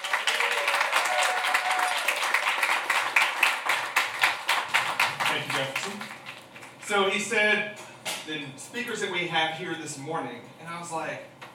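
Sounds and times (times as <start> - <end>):
audience cheering and whooping: 0.0 - 2.9
audience applause: 0.0 - 6.8
speech: 5.4 - 6.2, 6.9 - 11.3.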